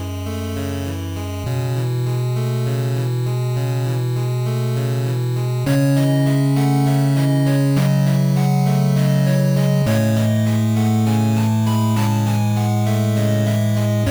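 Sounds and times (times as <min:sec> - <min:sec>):
8-bit chiptune: 0:00.2 - 0:14.0.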